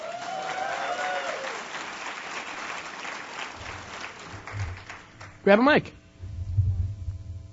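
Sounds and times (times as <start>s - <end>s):
audience clapping: 0.0s - 5.6s
speech: 5.5s - 6.0s.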